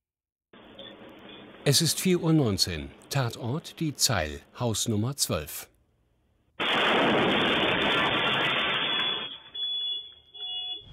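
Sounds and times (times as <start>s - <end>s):
speech: 1.7s - 5.7s
explosion of a shisha lounge: 6.6s - 9.5s.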